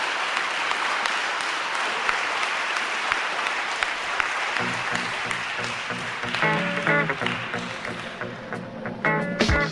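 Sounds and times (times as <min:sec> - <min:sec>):
audience applause: 0:00.0 - 0:09.6.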